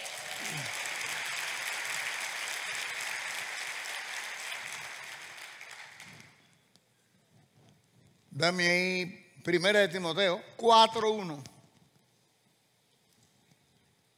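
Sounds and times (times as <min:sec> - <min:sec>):
applause: 0:00.0 - 0:06.5
speech: 0:08.4 - 0:11.5.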